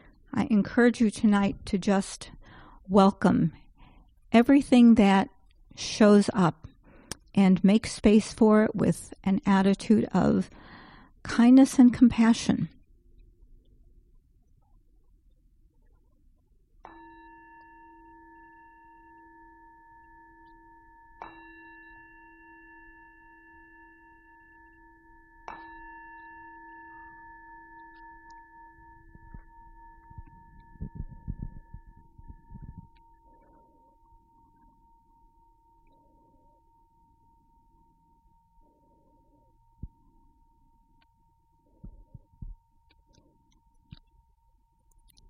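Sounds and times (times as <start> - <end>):
speech: 0.4 - 3.6, 4.3 - 6.6, 7.4 - 12.8
meditation bell ringing: 16.8 - 44.9.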